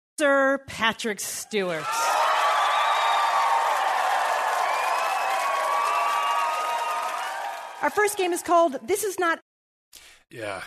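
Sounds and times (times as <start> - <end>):
speech: 0.2 - 2.1, 7.8 - 10.6
crowd cheering: 1.6 - 8.9.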